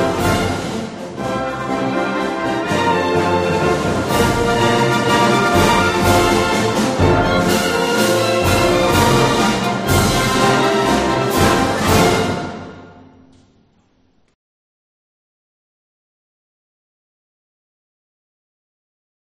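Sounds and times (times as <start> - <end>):
national anthem: 0.0 - 13.5.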